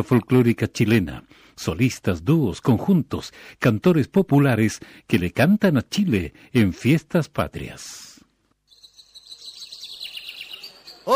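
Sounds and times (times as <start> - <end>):
speech: 0.0 - 8.1
small birds chirping and twittering: 8.5 - 11.1.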